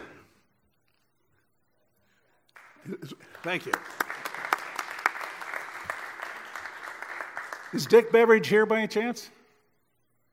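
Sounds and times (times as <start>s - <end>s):
crowd applause: 2.6s - 8.5s
speech: 2.8s - 4.1s, 7.7s - 9.4s.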